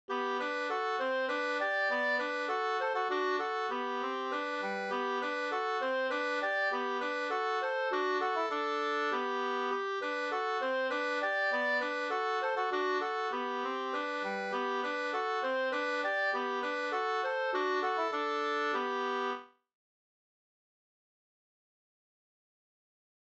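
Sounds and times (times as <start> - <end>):
folk dance music: 0.1 - 19.4.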